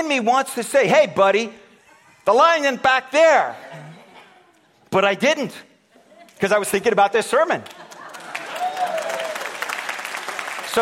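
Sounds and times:
speech: 0.0s - 1.6s, 2.3s - 3.8s, 4.9s - 5.7s, 6.4s - 7.8s
audience applause: 7.9s - 10.8s.

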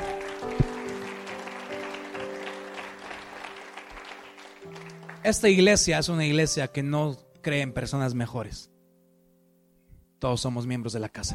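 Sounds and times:
audience applauding: 0.0s - 5.9s
speech: 5.2s - 8.7s, 10.2s - 11.3s.

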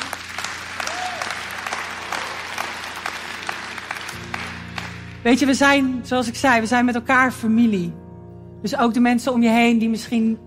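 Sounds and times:
crowd applauding: 0.0s - 5.3s
speech: 5.2s - 8.0s, 8.6s - 10.4s.

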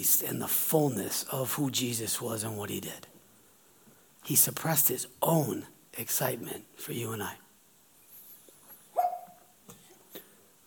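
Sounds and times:
speech: 0.0s - 3.1s, 4.2s - 7.4s
sneeze: 9.0s - 10.3s.

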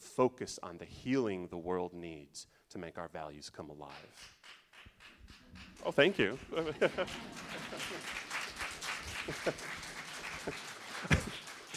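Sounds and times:
speech: 0.2s - 4.4s, 5.8s - 8.2s, 9.3s - 9.8s
audience clapping: 3.9s - 11.7s
laughter: 6.0s - 11.7s.

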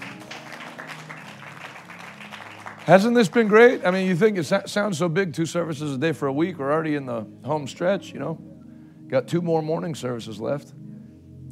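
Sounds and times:
audience hand clapping: 0.0s - 4.3s
speech: 2.9s - 10.9s.

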